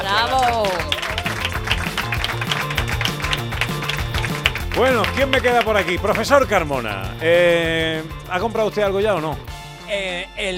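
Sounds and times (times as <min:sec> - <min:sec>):
audience applause: 0:00.0 - 0:06.3
speech: 0:04.8 - 0:10.5.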